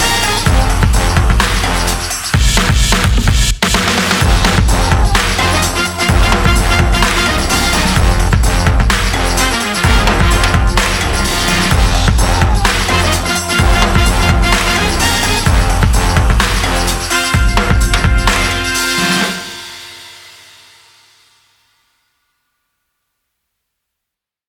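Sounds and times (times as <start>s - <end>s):
instrumental hard funk music: 0.0s - 3.2s, 4.2s - 19.8s.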